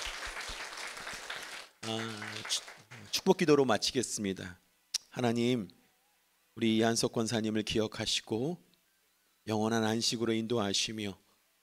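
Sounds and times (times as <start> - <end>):
congregation applause at a church memorial service: 0.0 - 3.4
speech: 1.8 - 4.6, 5.2 - 5.8, 6.6 - 8.7, 9.4 - 11.2.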